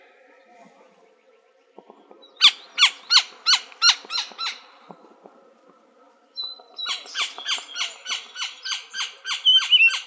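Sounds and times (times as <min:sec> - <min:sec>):
Gila woodpecker harsh calls in Arizona: 0:02.4 - 0:04.9, 0:06.8 - 0:10.0.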